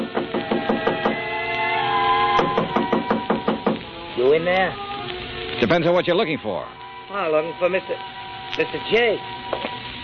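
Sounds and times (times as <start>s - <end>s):
rapid firm knocking on a wooden door: 0.0s - 1.2s, 2.4s - 3.8s
speech: 4.2s - 4.9s, 5.6s - 9.7s.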